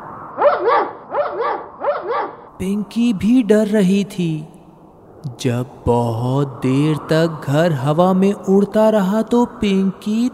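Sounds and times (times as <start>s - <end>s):
dog barking loudly: 0.4s - 2.5s
speech: 2.6s - 4.5s, 5.2s - 10.3s.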